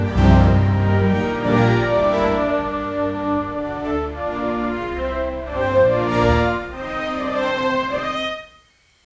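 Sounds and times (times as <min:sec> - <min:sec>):
folk music: 0:00.0 - 0:08.5.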